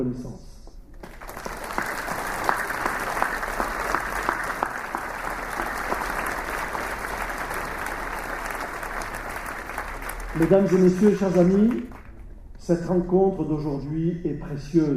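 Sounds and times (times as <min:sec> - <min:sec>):
speech: 0:00.0 - 0:00.5, 0:10.4 - 0:12.0, 0:12.6 - 0:14.9
audience applause: 0:01.0 - 0:12.2.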